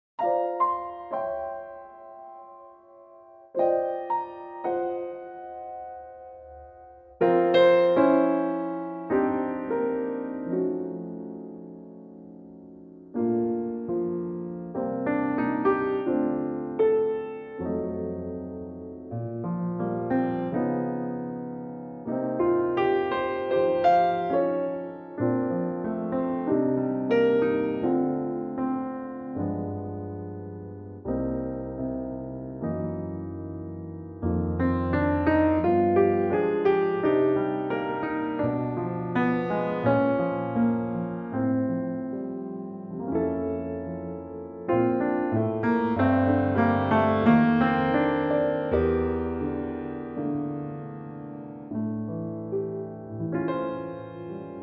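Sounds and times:
piano in B flat: 0:00.0 - 0:54.6.

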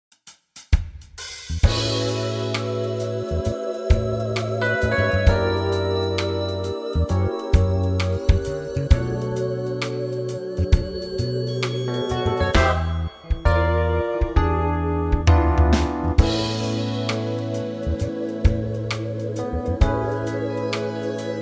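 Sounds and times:
smooth backing track for male vocals: 0:01.5 - 0:21.4.

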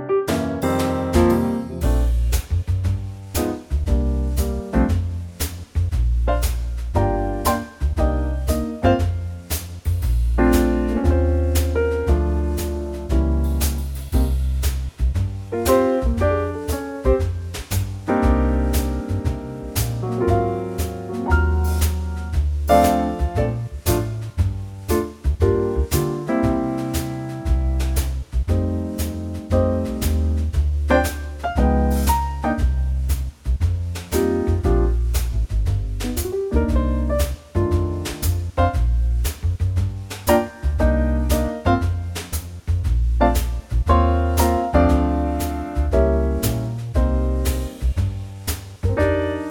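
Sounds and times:
backing track in B flat: 0:00.3 - 0:49.4.

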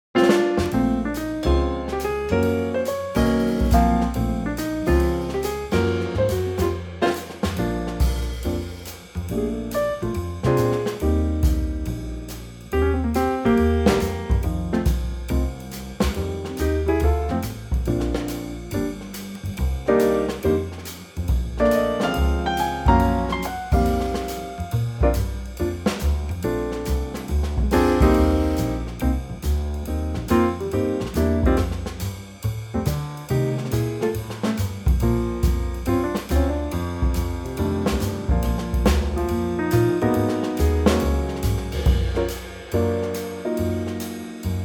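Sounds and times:
instrumental trio in B-flat: 0:00.1 - 0:44.6.

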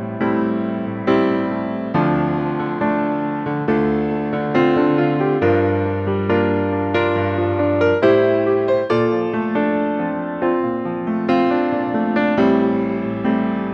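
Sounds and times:
piano only arrangement in D minor: 0:00.0 - 0:13.7.

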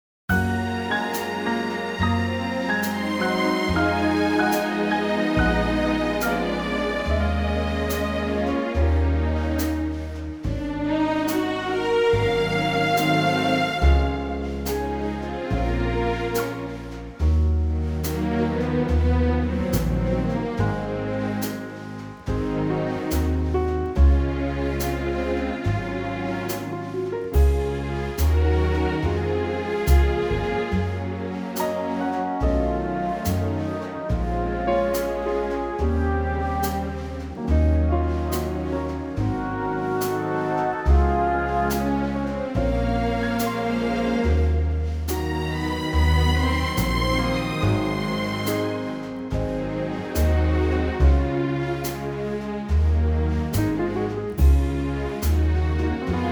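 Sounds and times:
orchestra playing in D flat: 0:00.3 - 0:56.3.

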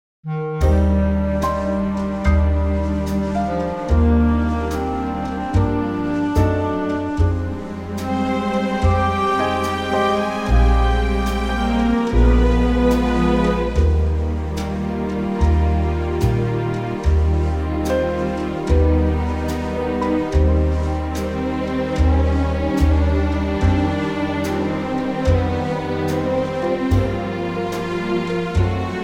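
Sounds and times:
orchestral backing track in E flat: 0:00.2 - 0:29.0.

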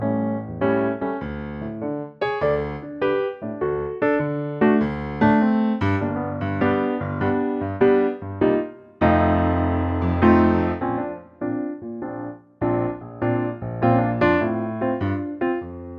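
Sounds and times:
piano medley: 0:00.0 - 0:15.9.

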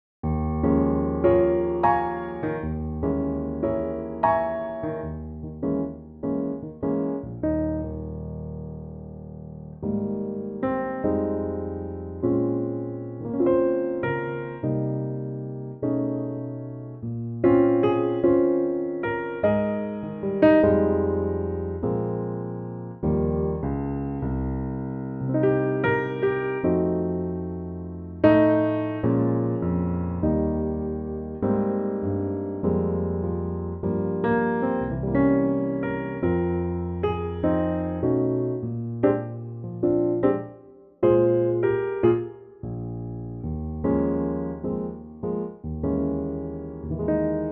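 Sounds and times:
piano in A-flat: 0:00.2 - 0:47.5.

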